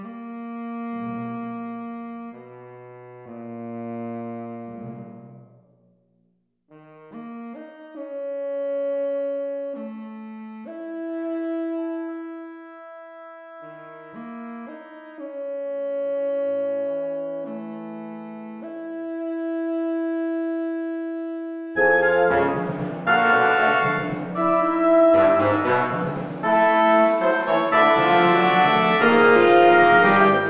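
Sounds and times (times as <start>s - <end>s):
saxophone band playing: 0.0s - 5.4s, 6.8s - 30.4s.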